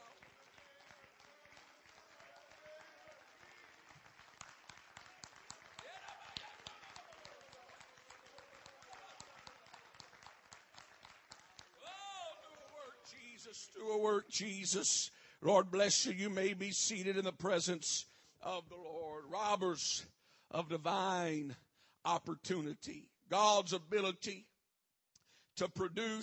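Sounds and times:
audience clapping hands: 0:00.0 - 0:14.8
speech: 0:13.4 - 0:24.5, 0:25.6 - 0:26.2.

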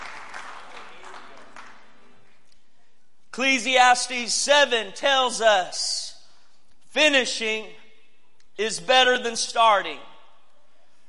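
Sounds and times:
audience hand clapping: 0:00.0 - 0:02.5
speech: 0:03.4 - 0:06.0, 0:06.9 - 0:07.8, 0:08.6 - 0:10.1.

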